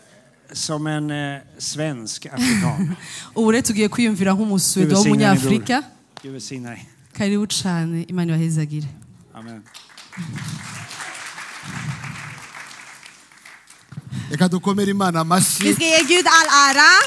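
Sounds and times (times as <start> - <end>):
speech: 0.5 - 10.9, 14.3 - 17.0
person speaking animatedly: 4.8 - 5.8
audience applauding: 9.4 - 17.0.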